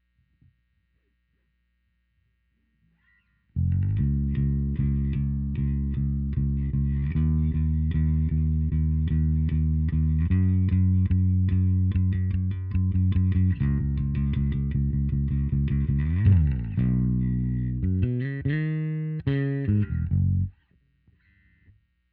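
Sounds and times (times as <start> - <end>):
bass: 3.4 - 22.1.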